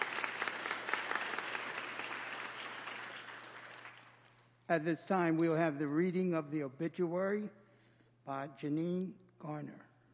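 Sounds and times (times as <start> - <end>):
audience hand clapping: 0.0 - 4.6
speech: 4.7 - 7.6, 8.3 - 9.9.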